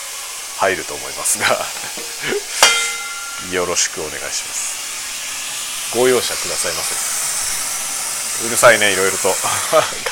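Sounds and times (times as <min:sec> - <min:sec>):
running tap water: 0:00.0 - 0:10.1
speech: 0:00.6 - 0:04.8, 0:05.9 - 0:07.2, 0:08.4 - 0:10.1
laughter: 0:01.3 - 0:02.6, 0:09.4 - 0:10.1
sharp clack: 0:02.0 - 0:03.7.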